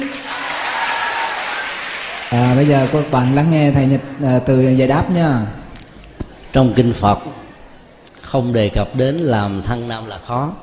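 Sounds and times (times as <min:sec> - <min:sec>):
audience clapping hands: 0:00.0 - 0:03.5
speech: 0:02.3 - 0:05.6, 0:06.5 - 0:07.4, 0:08.3 - 0:10.6.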